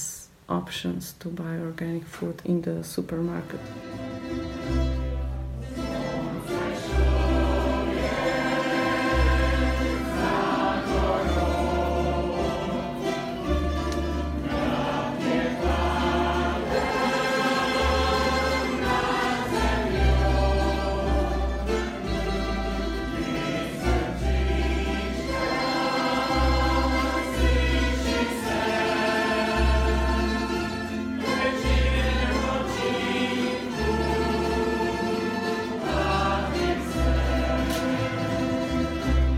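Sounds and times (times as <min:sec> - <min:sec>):
speech: 0:00.5 - 0:04.1
band music at a Women's Rights Day concert: 0:03.6 - 0:39.3.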